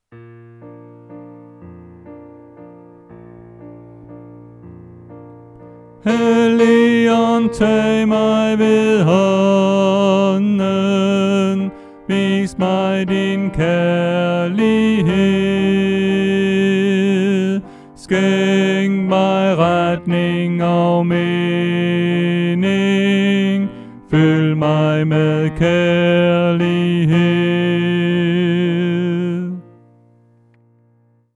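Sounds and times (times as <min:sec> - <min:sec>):
tenor singing: 0:05.5 - 0:30.0.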